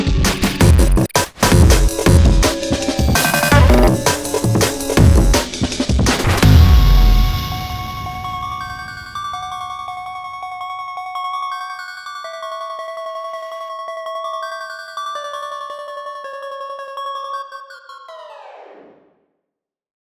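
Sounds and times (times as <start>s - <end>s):
instrumental music: 0.0s - 11.5s.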